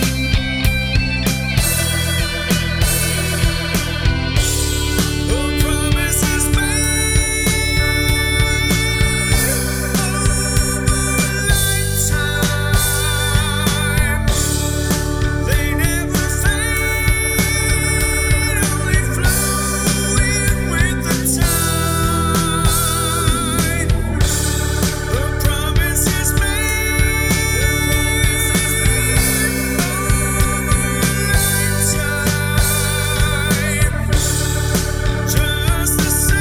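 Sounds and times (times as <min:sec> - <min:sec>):
bass: 0:00.0 - 0:36.4
keyboards: 0:00.0 - 0:36.4.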